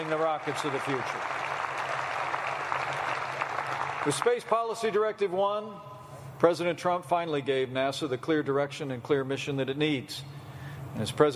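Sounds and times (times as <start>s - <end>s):
speech: 0.0s - 1.5s, 4.0s - 10.4s, 11.0s - 11.3s
large audience applause: 0.0s - 4.6s.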